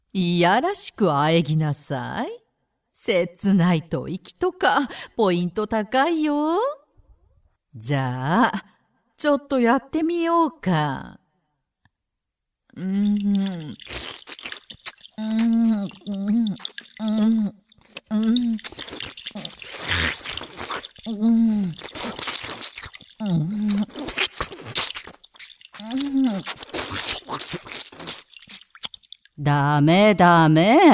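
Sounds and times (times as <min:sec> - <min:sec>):
speech: 0:00.1 - 0:02.4, 0:03.0 - 0:06.8, 0:07.7 - 0:11.2, 0:12.8 - 0:14.4, 0:15.2 - 0:22.2, 0:23.2 - 0:24.2, 0:25.8 - 0:28.2, 0:29.4 - 0:30.9
wet slurping oral sounds: 0:12.8 - 0:29.4.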